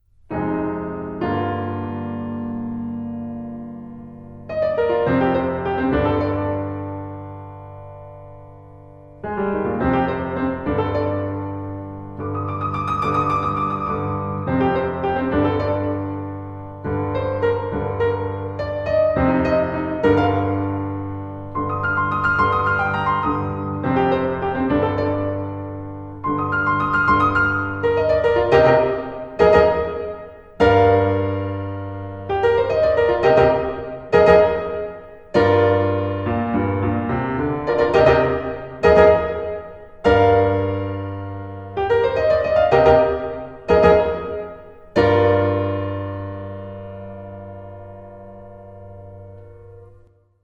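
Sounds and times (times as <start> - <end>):
piano: 0.0 - 50.4.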